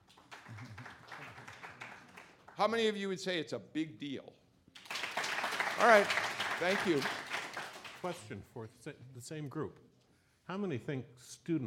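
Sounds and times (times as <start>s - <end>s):
applause: 0.0s - 3.0s, 4.8s - 8.3s
speech: 2.6s - 4.4s, 5.8s - 7.2s, 8.0s - 9.9s, 10.5s - 11.6s.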